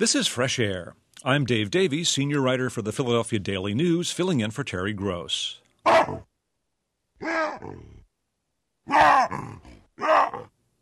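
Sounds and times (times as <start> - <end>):
speech: 0.0 - 6.3, 7.2 - 7.9, 8.9 - 10.5
wild baboons barking, grunting and screaming: 5.9 - 6.3, 8.9 - 10.5.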